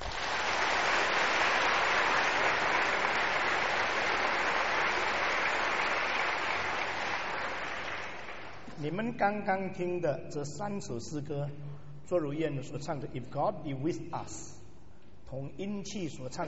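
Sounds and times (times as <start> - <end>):
audience applause: 0.0 - 8.6
speech: 8.8 - 14.6, 15.3 - 16.4.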